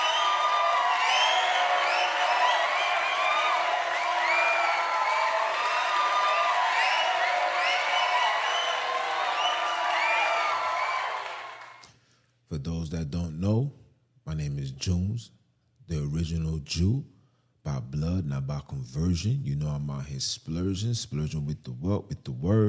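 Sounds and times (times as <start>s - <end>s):
applause: 0.0s - 11.8s
speech: 12.6s - 13.8s, 14.5s - 22.6s.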